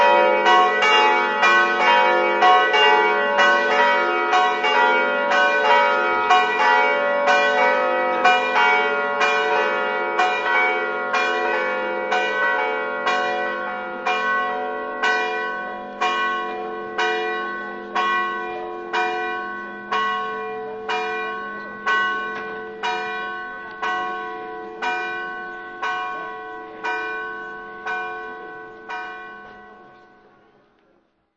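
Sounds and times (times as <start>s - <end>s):
bells ringing in Castagnevizza: 0.0s - 30.5s.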